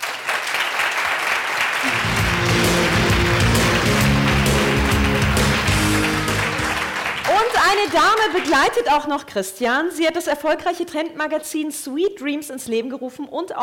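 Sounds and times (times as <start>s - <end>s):
audience applause: 0.0s - 8.9s
speech: 7.9s - 13.6s.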